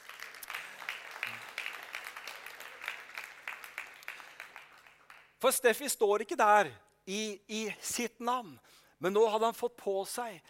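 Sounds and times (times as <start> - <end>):
audience applause: 0.0 - 5.4
speech: 5.4 - 10.4.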